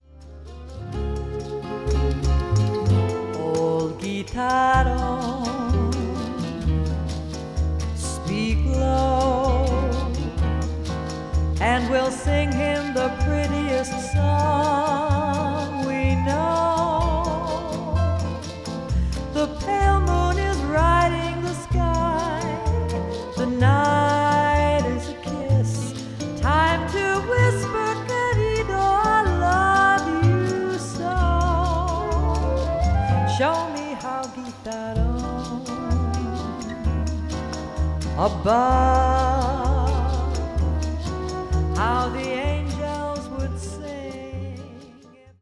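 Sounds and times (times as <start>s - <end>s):
guitar: 0.0s - 45.3s.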